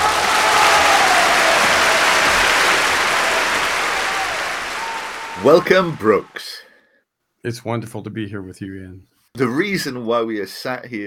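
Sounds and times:
audience applause: 0.0s - 6.5s
speech: 5.4s - 6.6s, 7.4s - 11.0s.

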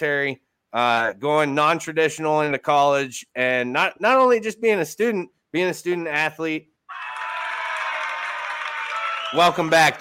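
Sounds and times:
speech: 0.0s - 6.7s, 9.3s - 9.9s
soundboard round of applause: 6.9s - 9.9s.

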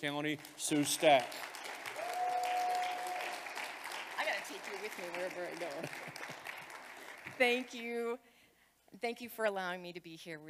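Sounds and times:
speech: 0.0s - 1.6s, 4.3s - 6.5s, 7.4s - 8.3s, 8.9s - 10.4s
church congregation clapping to welcome a speaker: 0.0s - 7.9s
laughter: 5.6s - 6.7s.

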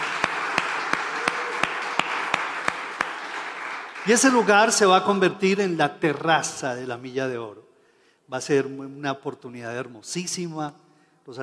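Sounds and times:
audience applauding: 0.0s - 5.1s
speech: 4.0s - 7.7s, 8.3s - 11.4s.

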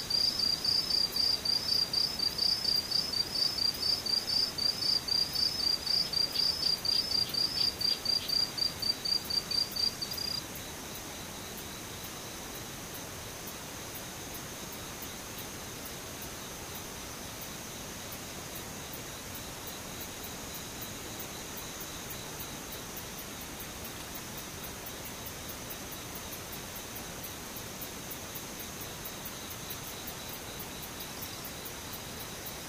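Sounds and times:
insect steady hiss: 0.0s - 32.6s.

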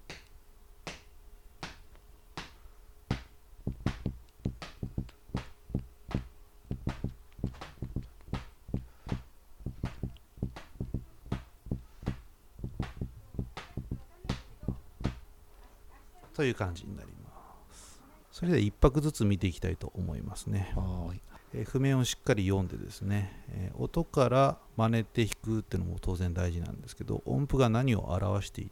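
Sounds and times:
foot tapping a beat: 0.0s - 1.8s, 2.4s - 15.2s
fingers tapping a rhythm: 3.1s - 15.2s
speech: 16.4s - 17.2s, 18.4s - 28.6s.

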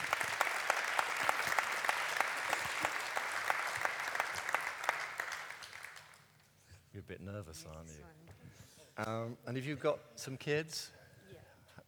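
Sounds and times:
audience applause: 0.0s - 6.2s
speech: 7.2s - 8.2s, 9.0s - 11.0s.

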